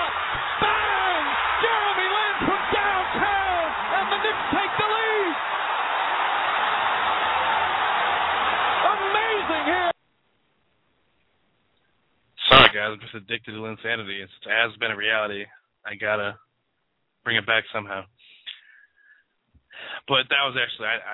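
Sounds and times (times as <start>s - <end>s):
whoops and yells: 0.0s - 9.9s
arena crowd cheering at a basketball game: 0.0s - 10.0s
speech: 12.8s - 16.4s, 17.2s - 18.3s, 20.0s - 21.1s.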